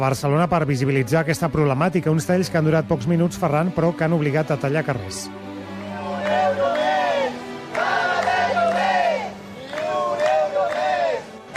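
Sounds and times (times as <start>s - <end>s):
speech: 0.0s - 5.5s
protesters chanting slogans: 5.8s - 11.5s.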